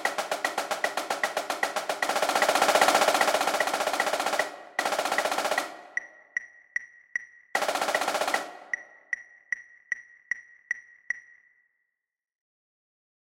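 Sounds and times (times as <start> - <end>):
trip snare drum sequence: 0.0 - 6.4, 7.6 - 9.2.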